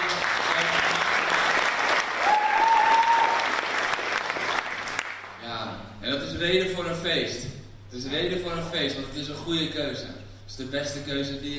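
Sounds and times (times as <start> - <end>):
audience applause: 0.0 - 5.4
speech: 6.4 - 11.5.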